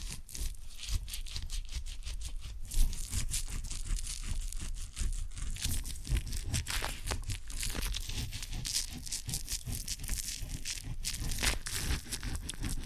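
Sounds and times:
ear and scalp massage rubbing and scratching: 0:00.0 - 0:12.8.

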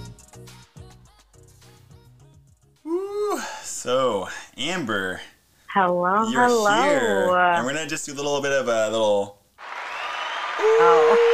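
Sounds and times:
speech: 0:03.8 - 0:09.4
applause sound effect: 0:09.6 - 0:11.3.

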